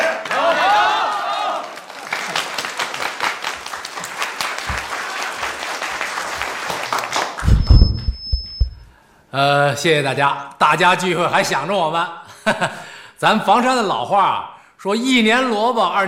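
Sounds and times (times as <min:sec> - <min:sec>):
applause at a reunion of former sent-down youth welcoming a guest: 0:00.0 - 0:07.5
speech: 0:09.4 - 0:16.0.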